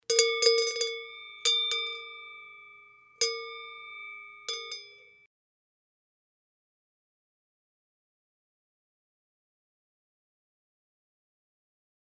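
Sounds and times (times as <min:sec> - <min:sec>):
bell: 0:00.0 - 0:05.3.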